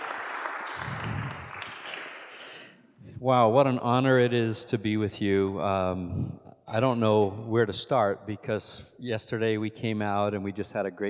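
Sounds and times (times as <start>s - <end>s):
audience applause welcoming a pastor: 0.0s - 2.4s
speech: 3.2s - 11.0s.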